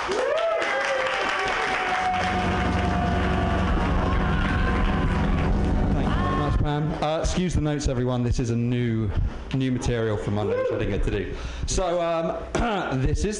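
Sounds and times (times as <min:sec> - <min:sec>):
audience clapping for a comedian: 0:00.0 - 0:06.2
speech: 0:07.2 - 0:13.3.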